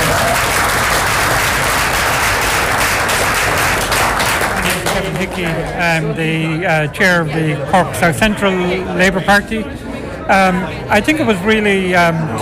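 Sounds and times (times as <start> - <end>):
crowd applauding: 0.0 - 5.9
speech: 5.2 - 12.4.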